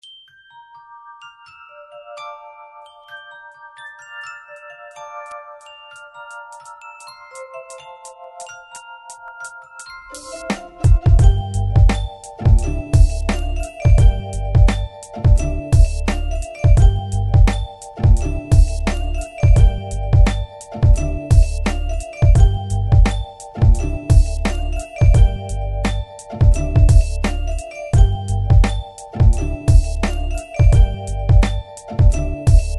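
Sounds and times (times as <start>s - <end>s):
beats: 10.1s - 32.7s.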